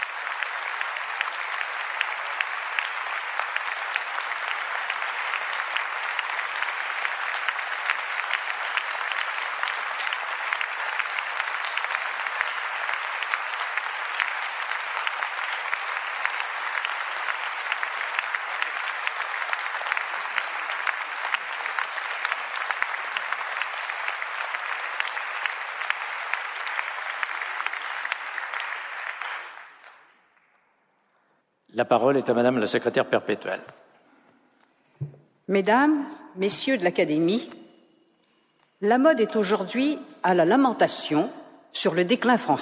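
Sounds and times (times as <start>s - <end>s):
audience applause: 0.0s - 30.7s
speech: 31.8s - 33.8s, 35.5s - 37.6s, 38.8s - 42.5s.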